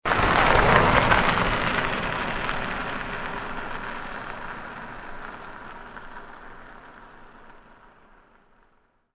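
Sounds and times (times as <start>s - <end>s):
car: 0.1s - 8.7s.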